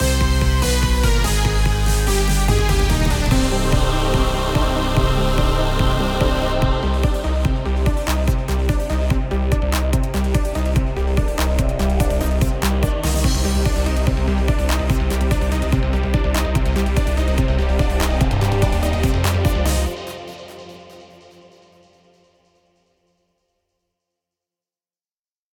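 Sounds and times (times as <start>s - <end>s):
boss battle intro game music: 0.0s - 19.9s.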